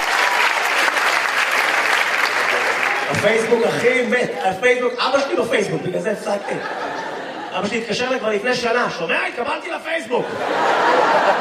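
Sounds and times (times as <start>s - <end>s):
audience applause: 0.0s - 4.4s
speech: 3.2s - 6.9s, 7.5s - 11.3s
laughter: 5.6s - 8.6s, 10.1s - 11.3s.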